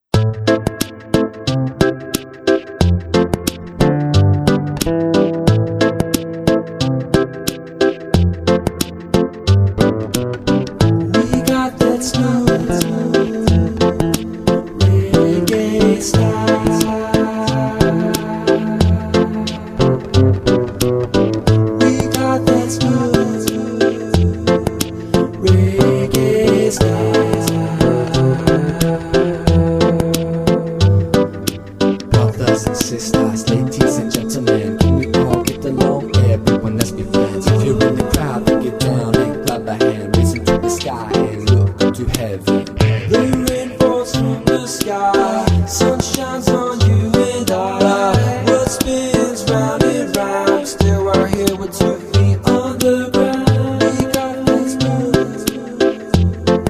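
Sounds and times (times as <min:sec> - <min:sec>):
smooth reggae music: 0:00.0 - 0:56.6.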